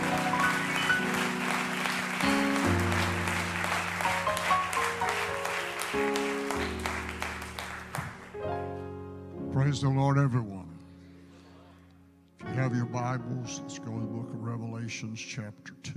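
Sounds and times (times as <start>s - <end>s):
audience clapping hands: 0.0s - 8.7s
speech: 9.7s - 10.7s, 12.8s - 15.9s.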